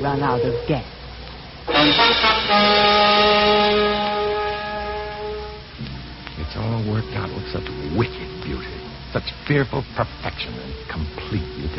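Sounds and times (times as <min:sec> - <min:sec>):
speech: 0:00.0 - 0:01.0, 0:01.8 - 0:04.1, 0:06.5 - 0:11.7
car horn honking on a highway: 0:01.7 - 0:05.7.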